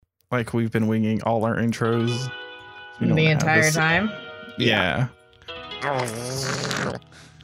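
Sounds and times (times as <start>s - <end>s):
speech: 0.3s - 2.4s, 3.0s - 5.2s, 5.8s - 7.3s
person gargling: 5.9s - 7.1s.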